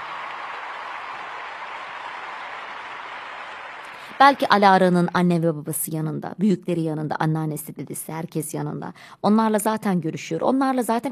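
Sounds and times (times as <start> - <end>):
applause: 0.0 - 5.1
speech: 4.2 - 11.1.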